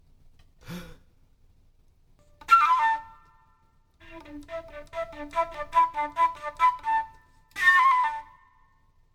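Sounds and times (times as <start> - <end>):
flute: 2.4 - 9.0.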